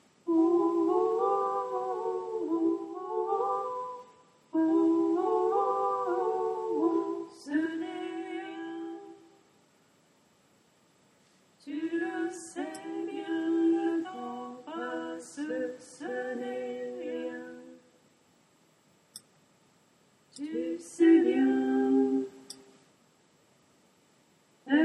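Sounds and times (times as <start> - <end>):
tenor singing: 0.3 - 9.3, 11.6 - 17.9, 20.3 - 22.7.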